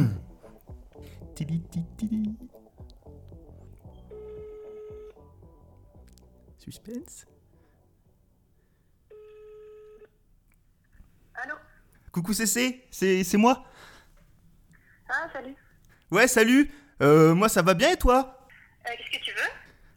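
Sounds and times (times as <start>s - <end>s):
speech: 1.4s - 2.6s, 6.6s - 7.3s, 12.2s - 13.9s, 15.1s - 19.6s
phone ringback tones on speakerphone: 3.9s - 5.3s, 9.1s - 10.2s.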